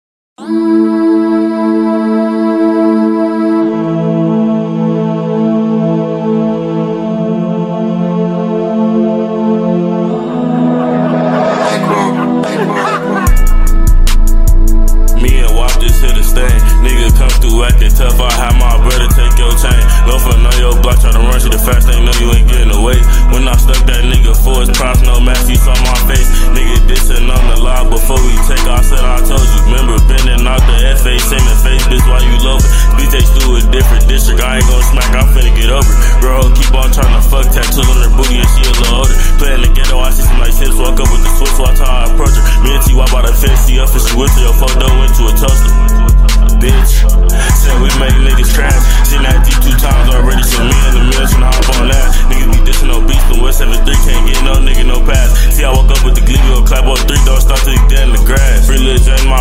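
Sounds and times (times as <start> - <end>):
rap music: 0.4 - 59.3
laughter: 10.6 - 13.6.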